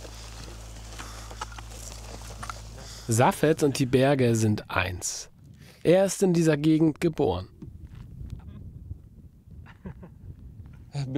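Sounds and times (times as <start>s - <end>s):
horse hooves clip-clopping with caravan: 0.0s - 3.6s
steady low hum: 0.0s - 11.1s
speech: 3.1s - 7.5s.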